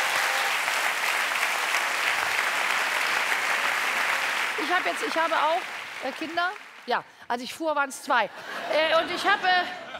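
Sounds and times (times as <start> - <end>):
audience applause: 0.0 - 7.0
speech: 4.6 - 9.8
laughter: 8.3 - 9.9.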